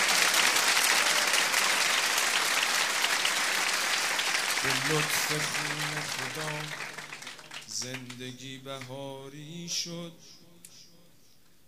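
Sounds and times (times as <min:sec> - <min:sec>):
audience clapping along: 0:00.0 - 0:09.0
speech: 0:04.6 - 0:06.9, 0:07.8 - 0:10.4.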